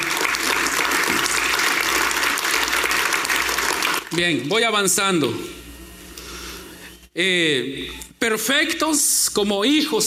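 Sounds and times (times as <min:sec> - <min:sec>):
audience clapping: 0:00.0 - 0:04.6
speech: 0:04.2 - 0:05.6, 0:07.2 - 0:10.0.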